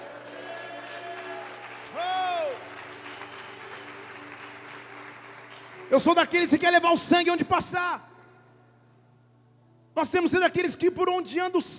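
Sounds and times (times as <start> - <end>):
audience applauding: 0.0 - 6.4
speech: 5.9 - 8.1, 10.0 - 11.7.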